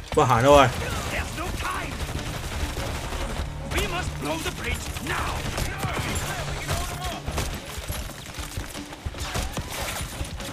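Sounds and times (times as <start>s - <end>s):
speech: 0.2s - 0.9s
machine gun fire in a video game: 0.5s - 10.3s.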